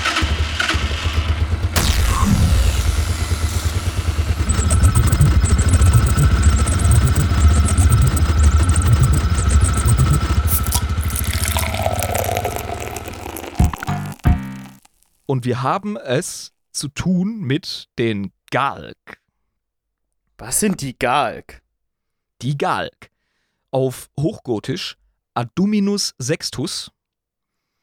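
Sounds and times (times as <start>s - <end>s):
machine switched on in a video game, mechanical rumble: 0.0s - 13.0s
speech: 15.3s - 19.2s, 20.4s - 21.6s, 22.4s - 23.1s, 23.7s - 27.0s.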